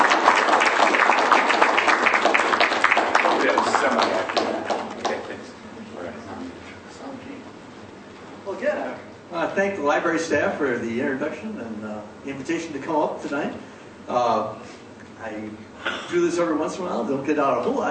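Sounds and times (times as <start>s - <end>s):
library talk audience applauding an author: 0.0s - 5.4s
speech: 9.6s - 17.8s.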